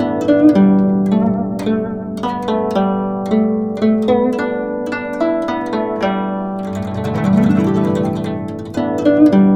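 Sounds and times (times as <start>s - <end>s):
guqin playing in G: 0.0s - 9.5s.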